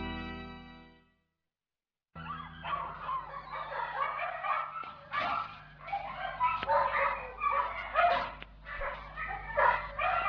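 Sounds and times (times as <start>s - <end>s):
several dogs barking and yipping in a pet shop: 2.2s - 10.2s.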